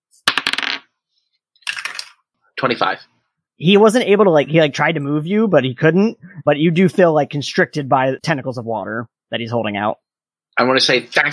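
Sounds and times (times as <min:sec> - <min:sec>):
dice being rolled: 0:00.2 - 0:01.0
speech: 0:02.6 - 0:10.0, 0:10.6 - 0:11.3.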